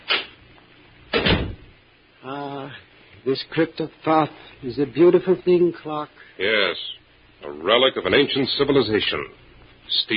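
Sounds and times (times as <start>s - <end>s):
crypt room door closing with a thud and rattle: 1.1s - 1.7s
speech: 2.2s - 10.1s.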